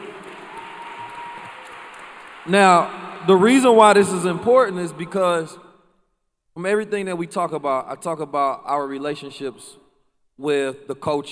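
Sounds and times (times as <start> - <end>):
audience clapping: 0.0 - 4.3
speech: 2.4 - 5.6, 6.6 - 9.8, 10.4 - 11.3.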